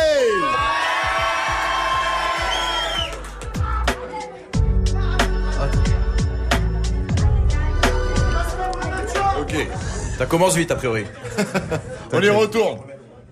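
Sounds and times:
crowd cheering and whooping: 0:00.0 - 0:04.0
thumping beat-driven instrumental: 0:01.1 - 0:10.7
speech: 0:10.2 - 0:12.9
laughter: 0:11.0 - 0:12.2.

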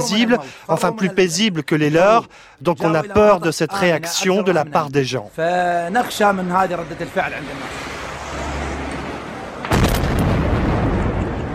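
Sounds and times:
speech: 0:00.0 - 0:08.0
car bomb exploding in a city neighbourhood: 0:09.6 - 0:11.5.

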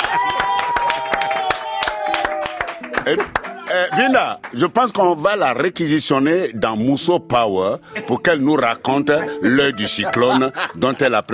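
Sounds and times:
studio audience applause: 0:00.0 - 0:04.7
speech: 0:03.1 - 0:11.3
laughter: 0:08.0 - 0:11.3.

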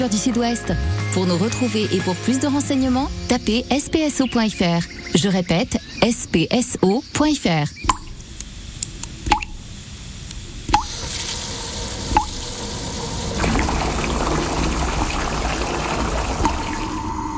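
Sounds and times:
speech: 0:00.0 - 0:07.8
water trickling: 0:10.8 - 0:17.2
water dripping from a leak: 0:12.0 - 0:17.1.

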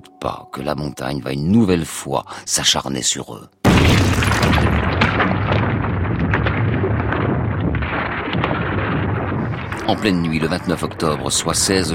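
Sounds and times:
speech: 0:00.1 - 0:05.7, 0:09.9 - 0:11.9
gritty crackling: 0:03.6 - 0:11.9
avalanche rumble: 0:04.4 - 0:11.9.

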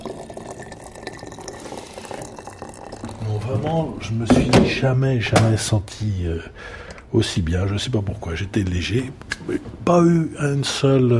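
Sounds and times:
water being poured into a herbal decoction: 0:00.0 - 0:04.2
speech: 0:03.3 - 0:11.1.

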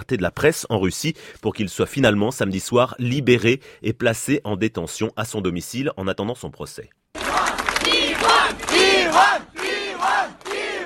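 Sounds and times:
speech: 0:00.0 - 0:07.0
large crowd of protesters shouting and chanting: 0:07.2 - 0:10.8.

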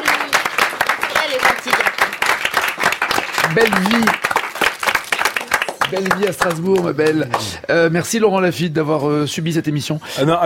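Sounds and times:
applause: 0:00.0 - 0:07.6
speech: 0:03.5 - 0:04.4, 0:05.9 - 0:10.4.

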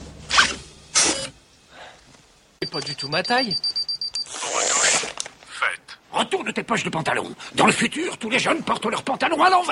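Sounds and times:
automatic self-lacing shoe mechanism whirring and zipping as it tightens: 0:00.3 - 0:01.4
speech: 0:02.7 - 0:03.8, 0:06.3 - 0:09.7.

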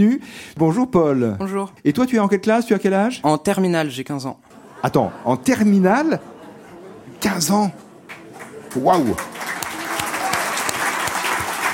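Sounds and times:
speech: 0:00.0 - 0:06.3, 0:07.2 - 0:07.8, 0:08.7 - 0:09.4
laughter: 0:04.5 - 0:11.4
audience applause: 0:08.0 - 0:11.7.

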